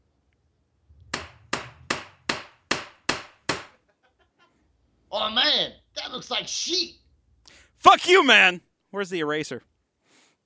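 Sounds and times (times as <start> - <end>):
hammer striking a chisel against stone: 1.1 - 3.7
speech: 5.1 - 7.0, 7.8 - 9.7.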